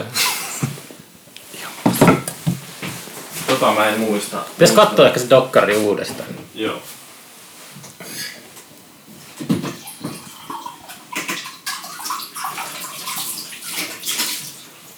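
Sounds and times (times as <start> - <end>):
running water: 0.0 - 7.1, 8.6 - 14.9
washing dishes: 0.0 - 14.9
speech: 3.6 - 6.9.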